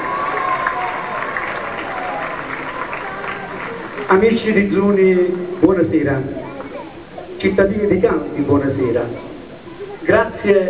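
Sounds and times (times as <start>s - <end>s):
audience applause: 0.0s - 5.6s
speech: 4.1s - 6.4s, 7.4s - 9.3s, 10.1s - 10.6s.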